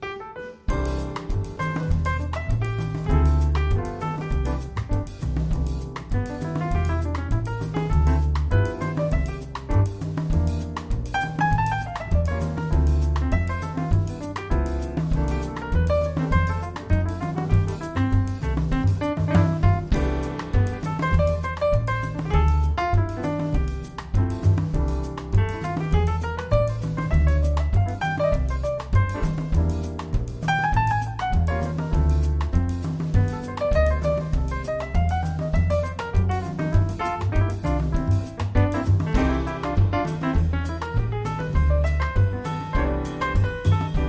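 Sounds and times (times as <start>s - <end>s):
piano: 0.0s - 44.0s.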